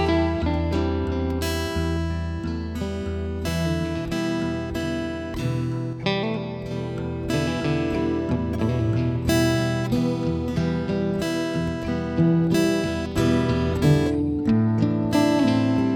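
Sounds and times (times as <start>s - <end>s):
stereo guitars: 0.0s - 15.9s.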